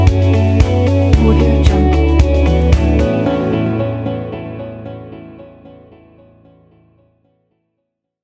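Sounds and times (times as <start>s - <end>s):
motivational and corporate ident music: 1.1s - 6.1s.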